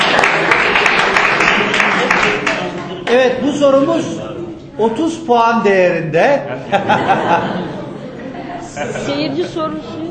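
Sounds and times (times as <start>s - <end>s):
audience applauding at a quiz contest: 0.0s - 3.2s
speech: 3.2s - 7.8s, 8.8s - 10.0s
laughter: 6.4s - 10.0s.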